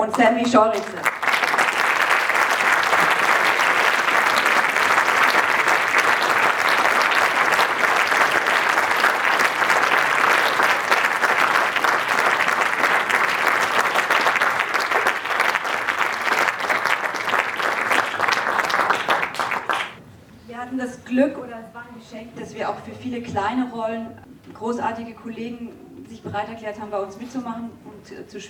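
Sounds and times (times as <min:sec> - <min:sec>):
speech: 0:00.0 - 0:01.2, 0:22.2 - 0:28.4
audience applause: 0:00.7 - 0:20.0.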